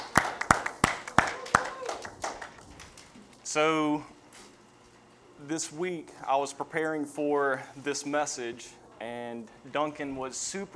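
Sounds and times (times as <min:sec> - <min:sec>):
audience applause: 0:00.0 - 0:03.3
speech: 0:03.6 - 0:04.2, 0:05.4 - 0:10.7.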